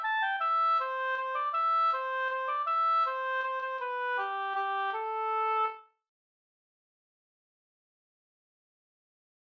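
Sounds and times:
waltz in A minor: 0.0 - 5.8.

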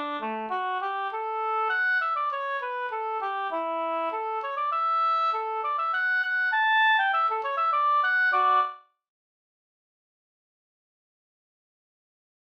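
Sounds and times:
quadrille music: 0.0 - 8.8.

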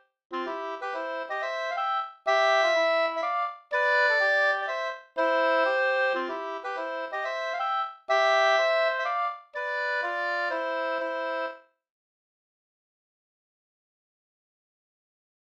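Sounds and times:
two-part polska dance tune: 0.3 - 11.6.

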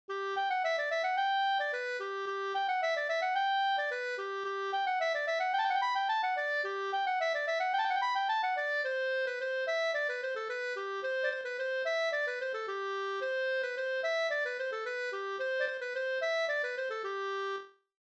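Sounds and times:
halling folk dance music: 0.2 - 17.0.

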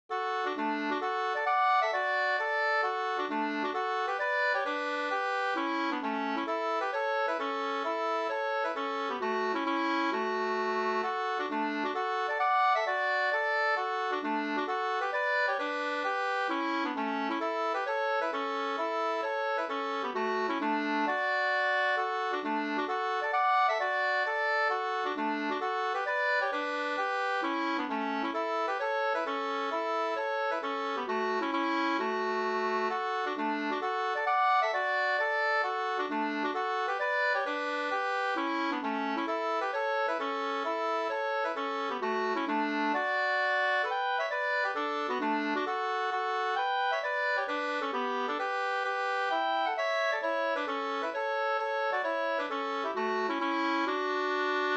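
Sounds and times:
hambo polska folk dance tune: 0.1 - 54.7.

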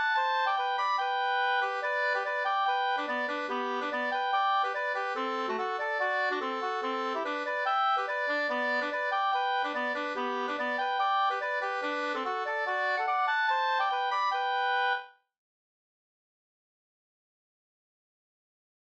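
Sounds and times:
reinlender folk dance music: 0.0 - 14.9.

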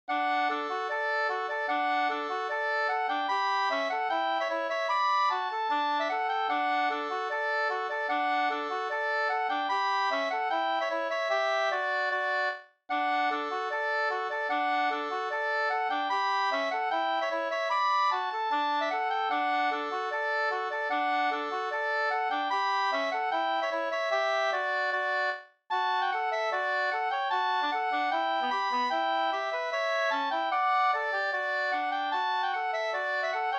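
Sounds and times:
schottische dance tune in D major: 0.2 - 33.5.

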